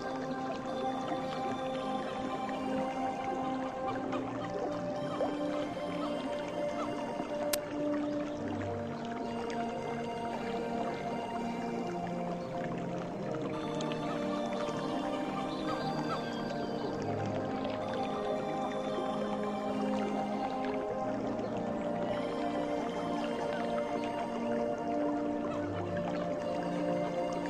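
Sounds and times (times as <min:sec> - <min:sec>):
faint watery dripping: 0:00.0 - 0:27.4
soft piano music: 0:00.0 - 0:27.4.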